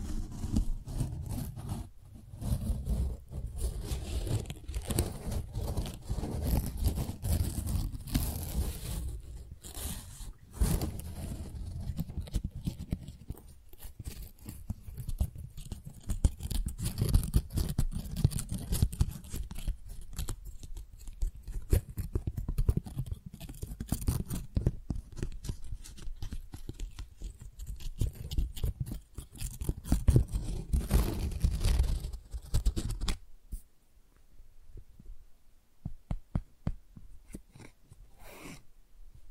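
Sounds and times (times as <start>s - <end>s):
crinkly rustling and scratching of flowers: 0.0s - 33.2s
crisp ticks and snips: 11.7s - 33.2s.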